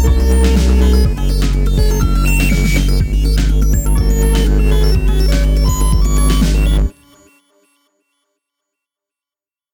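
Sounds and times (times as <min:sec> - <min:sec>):
craftsynth synth sound: 0:00.0 - 0:07.4.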